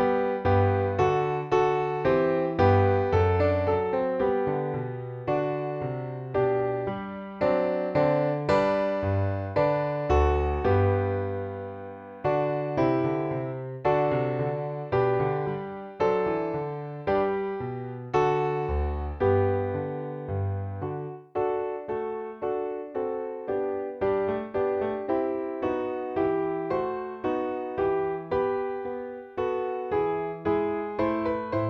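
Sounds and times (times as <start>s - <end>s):
piano accompaniment in concert G: 0.0s - 31.6s.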